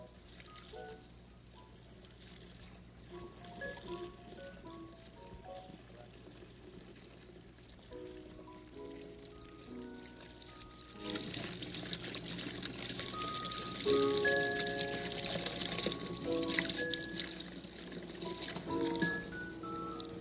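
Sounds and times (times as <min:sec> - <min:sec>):
soft sustained musical notes: 0:00.0 - 0:06.4, 0:07.7 - 0:20.2
paint brushes rinsed in water: 0:02.1 - 0:20.2.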